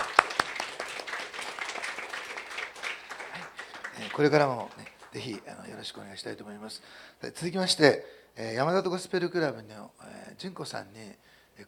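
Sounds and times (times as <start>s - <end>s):
audience applause: 0.0s - 5.9s
speech: 4.0s - 11.6s.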